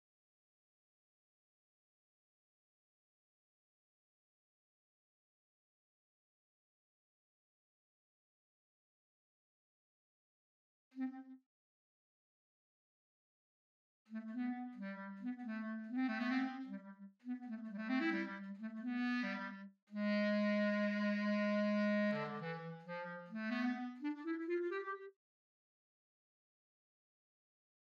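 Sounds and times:
clarinet: 11.0 - 11.4, 14.1 - 25.2.

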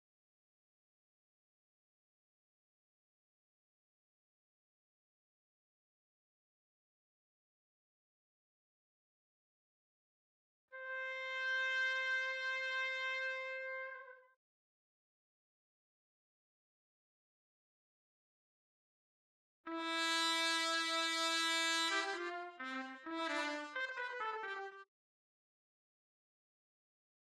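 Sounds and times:
trumpet: 10.7 - 14.4, 19.7 - 24.9.

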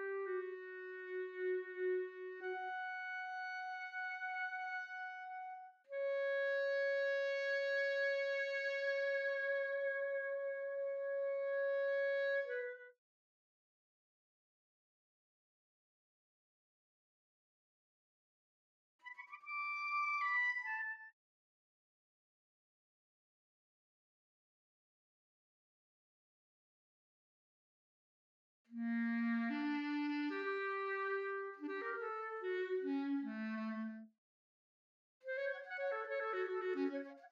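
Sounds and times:
clarinet: 0.0 - 13.0, 19.0 - 21.1, 28.7 - 34.1, 35.2 - 37.3.

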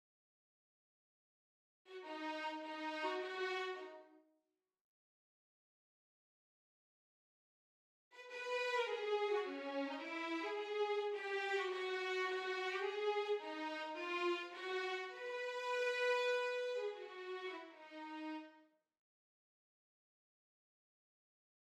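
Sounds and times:
violins: 1.9 - 4.1, 8.2 - 18.6.

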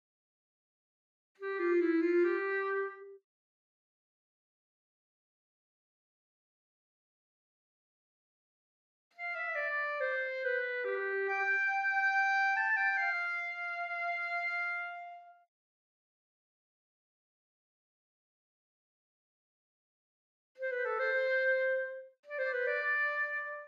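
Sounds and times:
clarinet: 1.4 - 3.2, 9.2 - 15.5, 20.6 - 23.6.

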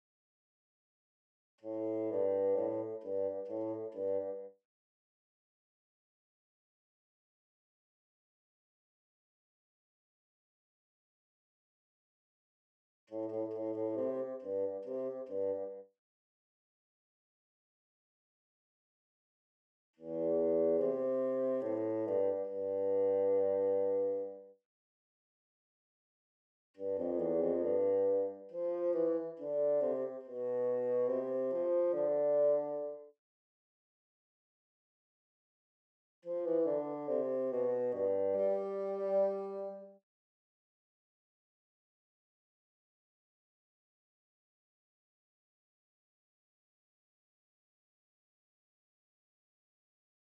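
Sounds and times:
bassoon: 1.6 - 4.6, 13.1 - 15.8, 20.0 - 24.5, 26.8 - 33.1, 36.2 - 40.0.

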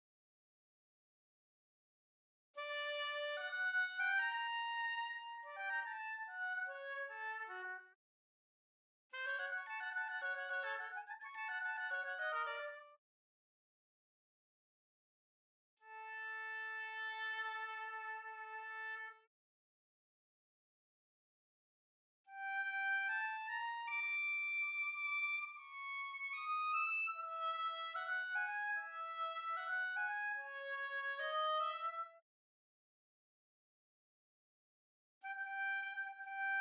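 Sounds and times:
oboe: 2.6 - 7.8, 9.2 - 13.0, 15.8 - 19.3, 22.3 - 32.2, 35.2 - 36.6.

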